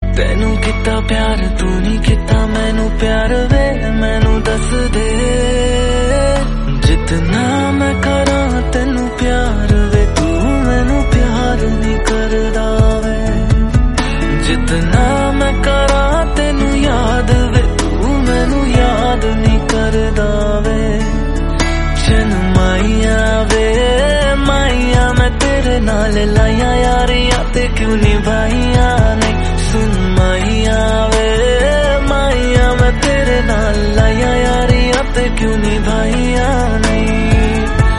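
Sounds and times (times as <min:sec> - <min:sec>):
Hindi song: 0:00.1 - 0:37.9.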